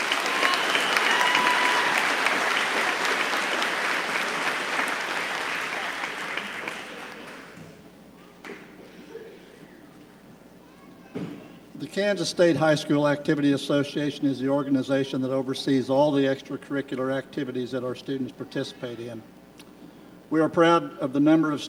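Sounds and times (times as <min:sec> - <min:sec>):
audience applause for valedictorians: 0:00.0 - 0:07.6
speech: 0:12.0 - 0:19.4, 0:20.3 - 0:21.6.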